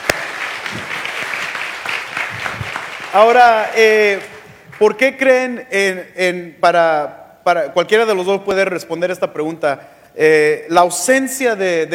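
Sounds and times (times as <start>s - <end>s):
audience applause: 0.0s - 4.9s
speech: 3.1s - 11.9s.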